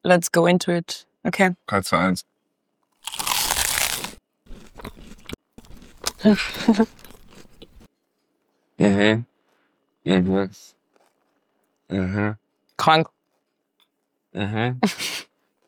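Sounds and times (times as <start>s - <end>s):
speech: 0.0s - 2.3s, 6.2s - 7.0s, 8.8s - 9.3s, 10.0s - 10.8s, 11.9s - 13.2s, 14.3s - 15.1s
crunchy biting and chewing of cheese: 3.0s - 7.9s, 10.8s - 11.9s.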